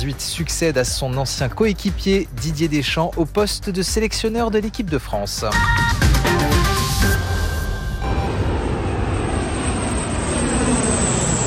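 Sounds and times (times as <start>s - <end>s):
speech: 0.0s - 6.0s
Canadair water bomber engine roaring overhead: 6.2s - 11.4s.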